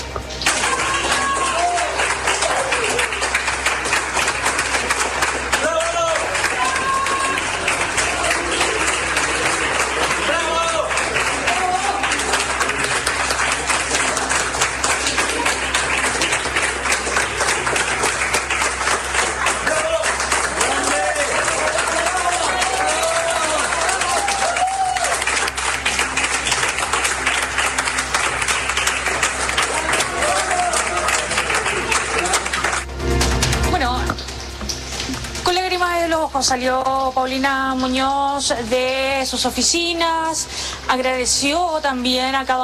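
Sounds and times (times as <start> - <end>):
office staff applauding: 0.0 - 41.4
speech: 36.5 - 42.6.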